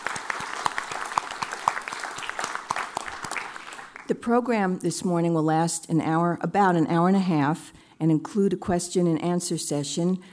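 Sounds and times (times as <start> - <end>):
morning audience at the New York Historical Society clapping: 0.0 - 4.2
speech: 4.1 - 10.3.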